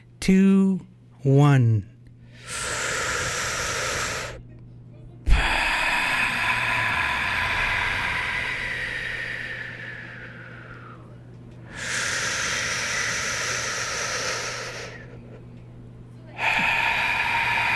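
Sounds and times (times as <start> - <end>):
speech: 0.2 - 2.8
deep breathing exercise breaths: 2.2 - 4.4, 5.3 - 15.4, 16.3 - 17.7.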